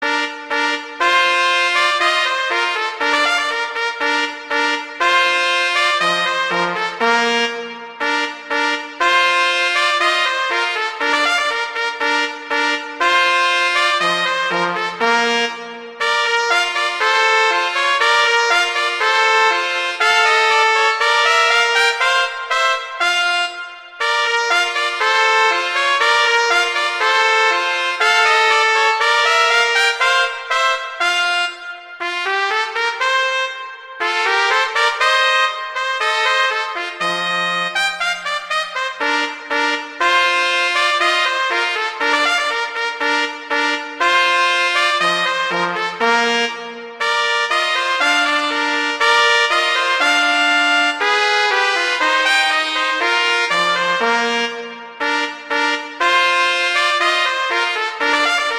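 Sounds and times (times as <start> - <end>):
horn duet: 0.0 - 58.5.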